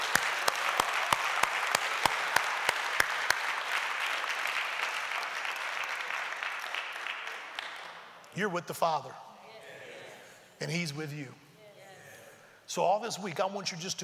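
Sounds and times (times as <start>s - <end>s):
audience applause: 0.0s - 8.0s
speech: 8.4s - 9.2s, 10.6s - 11.4s, 12.7s - 14.0s.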